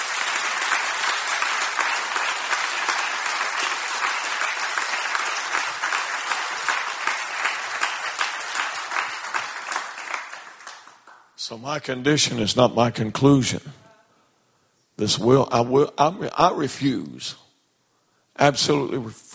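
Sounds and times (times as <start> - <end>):
audience clapping hands: 0.0 - 11.4
speech: 11.5 - 13.8, 15.0 - 17.4, 18.4 - 19.3.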